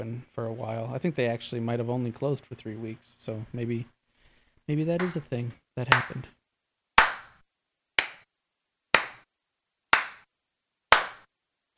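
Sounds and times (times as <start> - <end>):
speech: 0.1 - 4.0, 4.7 - 6.4
hand clapping: 5.0 - 5.2, 5.9 - 6.3, 7.0 - 7.4, 8.0 - 8.3, 9.0 - 9.2, 9.9 - 10.3, 10.9 - 11.3.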